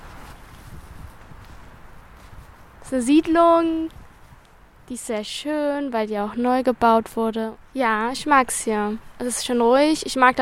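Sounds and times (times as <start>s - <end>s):
footsteps on a walk through a newly built social housing estate: 0.0s - 4.7s
speech: 2.9s - 4.0s, 4.9s - 10.3s.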